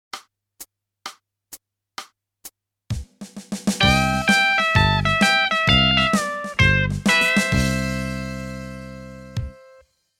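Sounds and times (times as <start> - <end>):
country music: 3.8 - 9.8.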